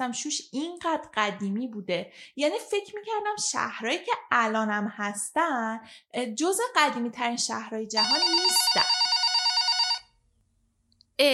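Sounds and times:
speech: 0:00.0 - 0:09.1
telephone ringing: 0:08.0 - 0:10.2.

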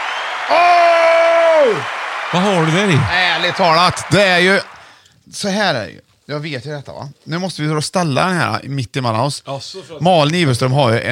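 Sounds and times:
applause for packing an item away: 0:00.0 - 0:05.0
speech: 0:00.5 - 0:00.7, 0:01.7 - 0:11.1.

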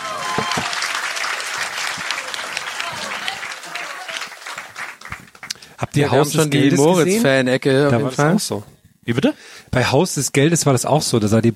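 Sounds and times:
applause: 0:00.0 - 0:05.9
speech: 0:00.4 - 0:00.8, 0:06.0 - 0:11.5.

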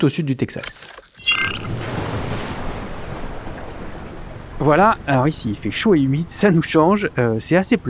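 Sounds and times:
speech: 0:00.0 - 0:01.8, 0:04.6 - 0:07.8
surf washing at Boca Chica in southern Texas: 0:01.7 - 0:06.5.

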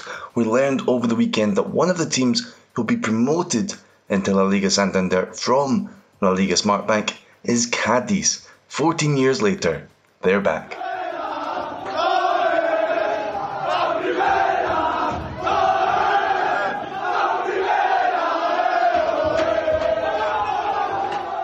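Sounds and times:
speech: 0:00.1 - 0:10.8
football players singing a group chant celebrating promotion: 0:10.7 - 0:21.4.

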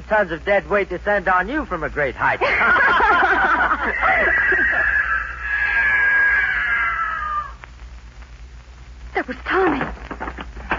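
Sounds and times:
speech: 0:00.1 - 0:03.3, 0:09.2 - 0:10.0
laughter: 0:02.3 - 0:07.4
mountain lion screaming: 0:04.5 - 0:07.6.

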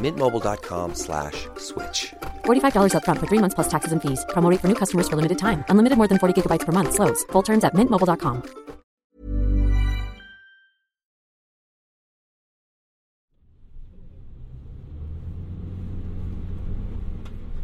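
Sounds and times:
speech: 0:00.0 - 0:08.6
car driving on the main highway out of Tbilisi, Georgia: 0:13.5 - 0:17.6.

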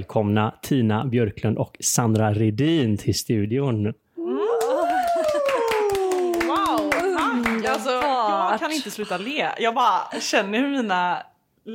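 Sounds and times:
speech: 0:00.0 - 0:04.0, 0:08.5 - 0:11.7
applause welcoming guests to the studio: 0:04.6 - 0:08.3.

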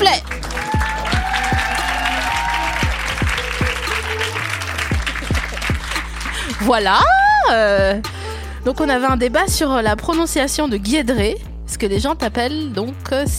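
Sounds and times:
audience applause: 0:00.1 - 0:06.8
audience cheering: 0:00.3 - 0:07.5
speech: 0:06.6 - 0:13.3.

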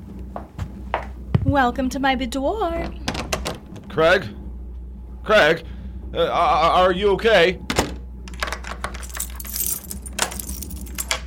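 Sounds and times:
speech: 0:01.5 - 0:03.0, 0:04.0 - 0:04.4, 0:05.2 - 0:07.6
door being locked with keys: 0:08.3 - 0:11.2.

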